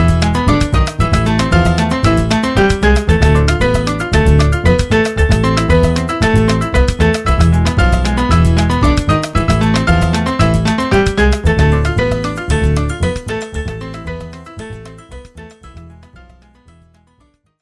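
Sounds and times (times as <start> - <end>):
Latin trio playing: 0.0 - 15.9.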